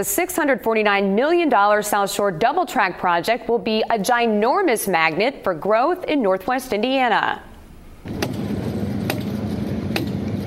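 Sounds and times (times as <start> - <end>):
speech: 0.0 - 8.2
hammer blows on a golden railroad spike: 9.0 - 10.4.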